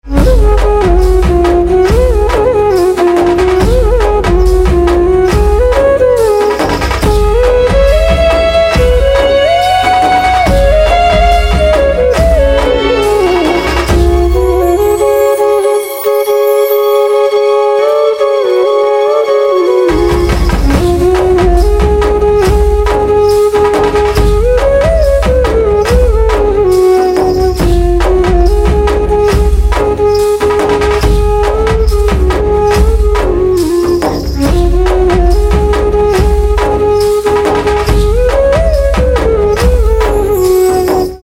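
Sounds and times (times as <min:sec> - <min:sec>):
flute instrumental ringtone: 0:00.0 - 0:41.2.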